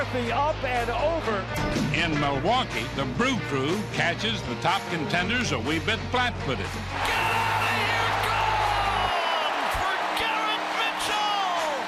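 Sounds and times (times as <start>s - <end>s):
speech: 0.0s - 7.2s
baseball crowd cheering: 6.8s - 11.8s.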